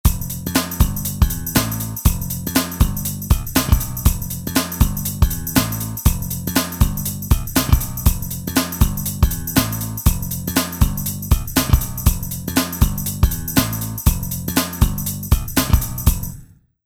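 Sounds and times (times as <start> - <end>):
funk music: 0.1 - 16.4.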